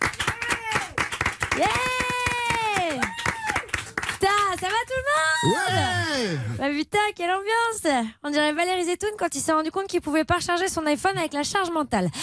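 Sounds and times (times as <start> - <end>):
audience clapping: 0.0 - 5.5
speech: 4.6 - 12.2.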